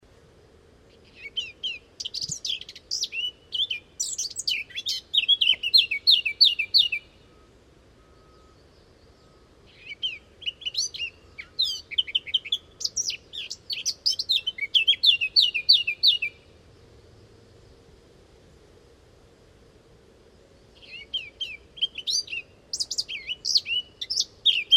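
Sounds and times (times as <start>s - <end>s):
Eurasian blackcap warbling song: 0.9s - 7.2s, 8.3s - 16.5s, 20.8s - 24.7s.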